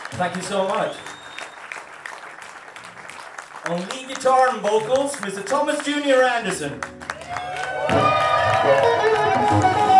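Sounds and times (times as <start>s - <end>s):
faint whistles: 0.0s - 1.8s
concert audience applause: 0.0s - 9.9s
speech: 0.1s - 1.1s, 3.7s - 8.0s, 8.6s - 9.8s.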